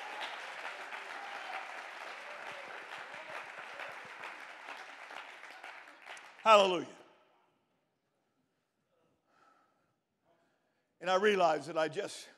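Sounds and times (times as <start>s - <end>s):
audience clapping: 0.0s - 6.9s
speech: 6.4s - 7.0s, 11.1s - 12.3s.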